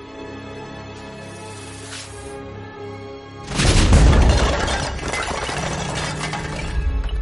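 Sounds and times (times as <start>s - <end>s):
giant snake crashing against window glass: 3.5s - 7.2s.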